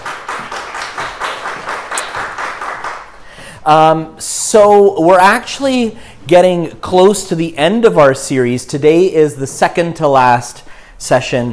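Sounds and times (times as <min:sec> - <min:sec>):
audience applause: 0:00.0 - 0:03.2
speech: 0:03.6 - 0:11.5.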